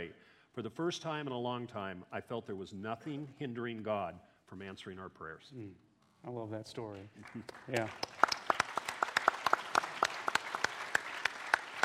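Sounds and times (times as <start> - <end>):
speech: 0.0 - 8.3
audience applause: 7.2 - 11.8.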